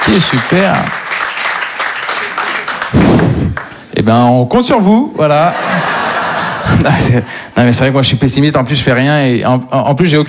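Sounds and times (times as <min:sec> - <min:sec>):
audience applause at an evening talk: 0:00.0 - 0:03.8
speech: 0:00.1 - 0:01.0, 0:04.0 - 0:05.9, 0:06.6 - 0:10.2
laughter: 0:05.4 - 0:07.3.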